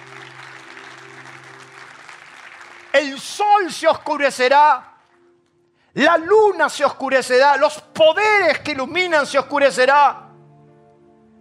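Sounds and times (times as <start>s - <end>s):
audience applause: 0.0s - 3.2s
speech: 3.0s - 4.9s, 6.0s - 10.2s.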